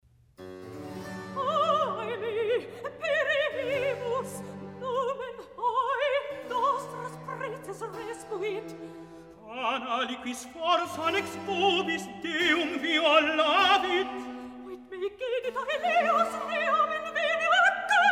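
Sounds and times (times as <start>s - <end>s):
recitative singing: 1.3s - 18.1s.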